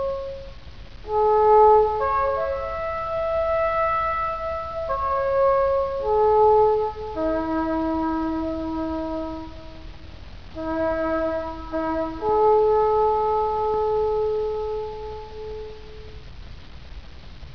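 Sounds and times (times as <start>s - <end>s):
bugle call: 1.1s - 9.8s, 10.6s - 15.8s.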